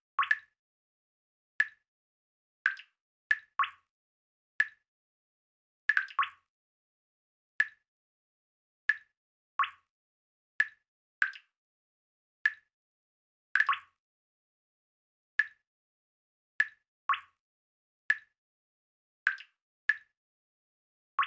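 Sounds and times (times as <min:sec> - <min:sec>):
liquid water in a cave: 0:00.2 - 0:00.6, 0:01.6 - 0:01.9, 0:04.6 - 0:04.9, 0:05.9 - 0:06.5, 0:07.6 - 0:07.8, 0:08.9 - 0:09.9, 0:10.6 - 0:11.6, 0:12.4 - 0:12.7, 0:13.6 - 0:14.0, 0:15.4 - 0:15.7, 0:16.6 - 0:17.4, 0:19.3 - 0:20.2.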